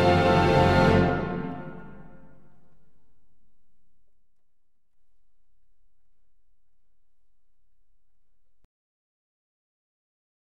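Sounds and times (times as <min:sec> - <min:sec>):
orchestra playing presto in F: 0:00.0 - 0:03.5.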